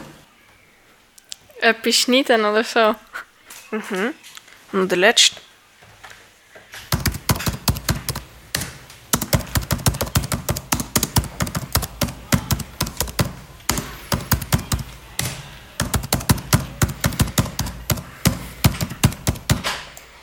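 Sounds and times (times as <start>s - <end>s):
speech: 1.7s - 3.1s, 3.7s - 5.5s
rapid typing on a computer keyboard: 6.9s - 19.7s.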